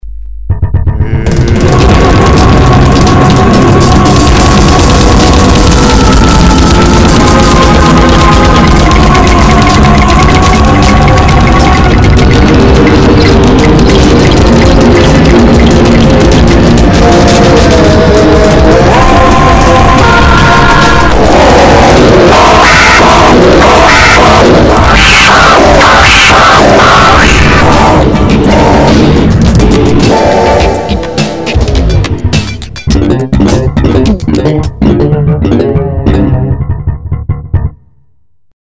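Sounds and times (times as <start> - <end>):
zouk music: 0.5 - 37.9.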